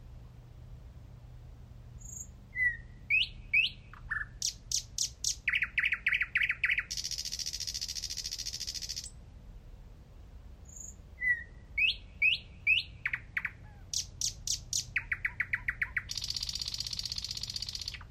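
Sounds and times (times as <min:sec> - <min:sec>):
thrush nightingale Luscinia luscinia singing: 0:02.0 - 0:09.2, 0:10.6 - 0:18.1.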